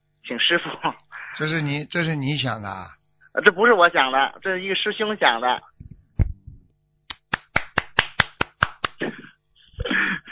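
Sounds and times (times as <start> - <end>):
speech: 0.3 - 5.7
audience clapping: 7.1 - 9.0.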